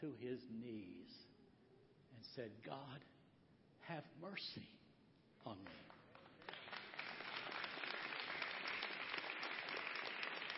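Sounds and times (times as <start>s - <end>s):
speech: 0.0s - 1.4s, 2.1s - 3.2s, 3.8s - 4.8s, 5.4s - 6.0s
audience applause: 6.1s - 10.5s.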